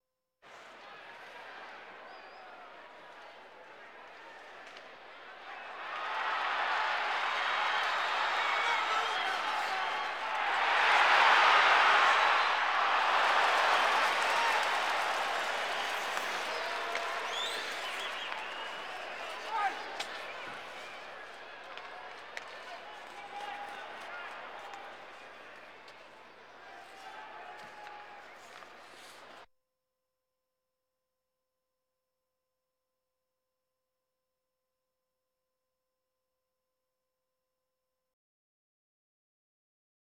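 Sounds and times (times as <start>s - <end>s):
sports crowd: 0.4s - 29.5s.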